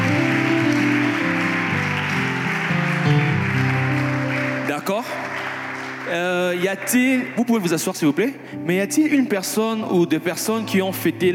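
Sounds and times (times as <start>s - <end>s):
church congregation cheering: 0.0s - 6.9s
standing church congregation applauding: 0.0s - 8.2s
stepping keyboard melody: 0.0s - 11.3s
speech: 4.8s - 5.4s, 6.1s - 11.3s.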